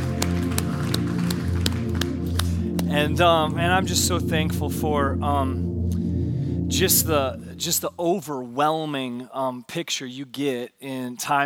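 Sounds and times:
audience clapping: 0.0s - 3.5s
speech: 2.9s - 5.7s, 6.7s - 11.4s.

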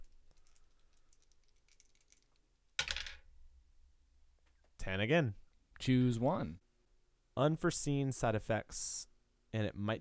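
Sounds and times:
dice rolled for a tabletop roleplaying game: 1.2s - 3.2s
speech: 4.8s - 6.6s, 7.4s - 9.9s.

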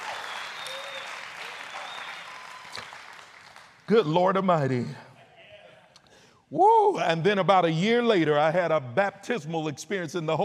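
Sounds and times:
audience clapping hands: 0.0s - 4.2s
whoops and voices: 0.1s - 3.0s, 6.5s - 7.2s
speech: 3.9s - 5.0s, 6.5s - 10.4s.

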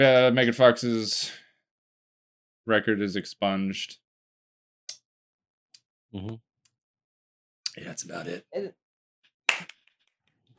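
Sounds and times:
speech: 0.0s - 1.4s, 2.6s - 4.0s, 6.1s - 6.5s, 7.8s - 8.8s
finger snap: 9.5s - 9.8s.

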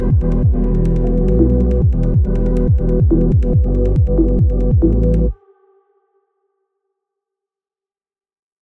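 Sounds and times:
ambient future garage music: 0.0s - 5.4s.

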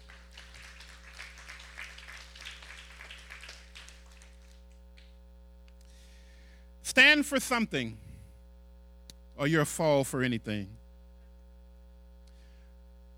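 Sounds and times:
audience clapping hands: 0.0s - 5.2s
speech: 6.9s - 8.0s, 9.4s - 10.8s.

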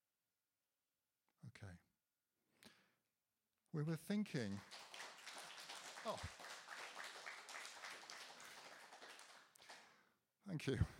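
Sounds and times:
speech: 1.5s - 1.9s, 3.7s - 4.8s, 6.0s - 6.4s, 10.5s - 10.9s
audience clapping: 4.4s - 10.0s.

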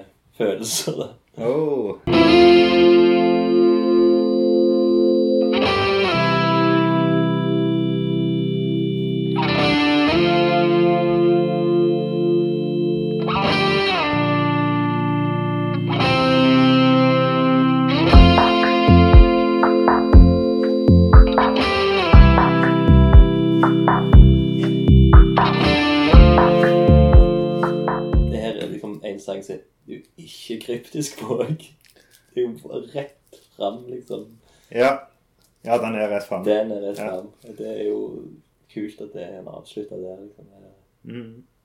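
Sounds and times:
speech: 0.4s - 3.0s, 30.7s - 31.8s, 32.5s - 41.5s
effects-heavy electric guitar solo: 2.1s - 28.6s
steady drum beat: 18.1s - 28.8s.

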